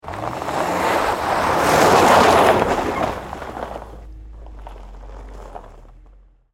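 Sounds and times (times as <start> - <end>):
automobile tires spinning donuts in snow and ice: 0.0 - 6.5
ice cracking: 0.1 - 6.2.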